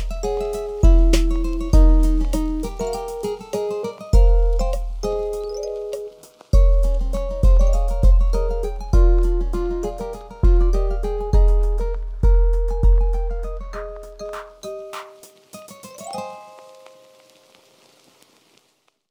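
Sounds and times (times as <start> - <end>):
lofi remix music: 0.0 - 3.2, 6.6 - 15.4.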